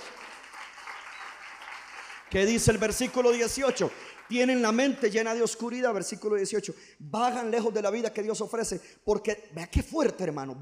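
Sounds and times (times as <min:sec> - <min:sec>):
audience applause: 0:00.0 - 0:05.4
speech: 0:02.3 - 0:10.6.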